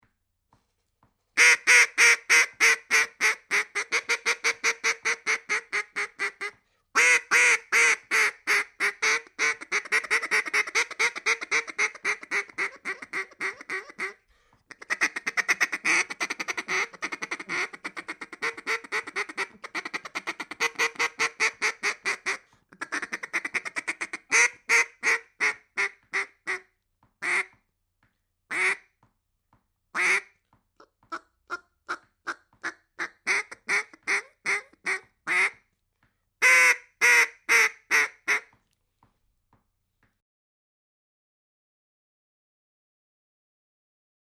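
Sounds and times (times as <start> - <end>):
duck: 1.4 - 27.6, 28.5 - 28.9, 30.0 - 35.6, 36.4 - 38.6.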